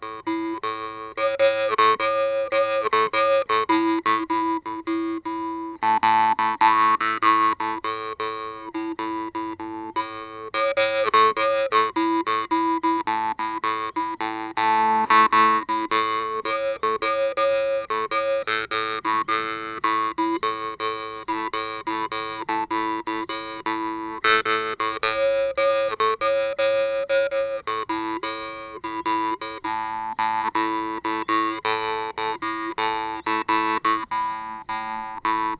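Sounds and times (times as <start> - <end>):
accompanying notes: 0.0 - 35.5.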